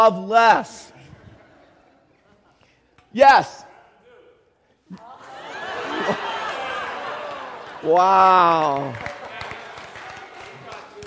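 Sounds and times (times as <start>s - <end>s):
speech: 0.0s - 0.9s, 3.1s - 3.7s, 7.8s - 9.2s
laughter: 1.0s - 2.9s, 4.9s - 11.0s
hand clapping: 7.3s - 11.0s.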